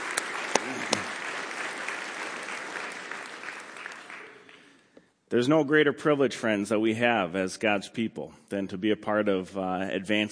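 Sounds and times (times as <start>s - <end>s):
audience round of applause: 0.0s - 4.8s
speech: 5.3s - 10.3s.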